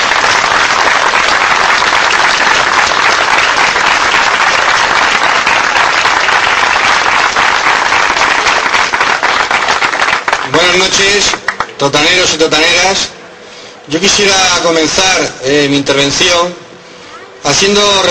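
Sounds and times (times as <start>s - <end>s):
audience applause welcoming a speaker: 0.0s - 11.8s
speech: 10.8s - 13.2s, 13.9s - 16.6s, 17.4s - 18.0s.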